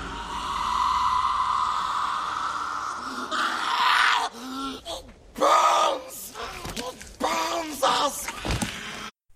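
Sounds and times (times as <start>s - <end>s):
echoing creature screech from a movie: 0.0s - 4.3s
rasping vocal cries: 0.0s - 9.1s.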